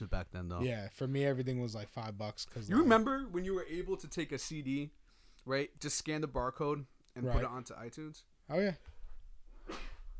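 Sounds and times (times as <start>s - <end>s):
speech: 0.0s - 8.9s
sneeze: 9.6s - 10.1s.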